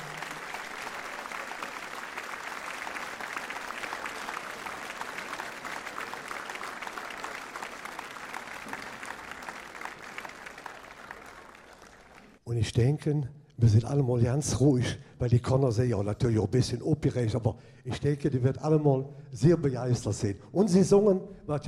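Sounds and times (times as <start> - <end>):
audience applause: 0.0 - 12.4
speech: 12.5 - 21.6.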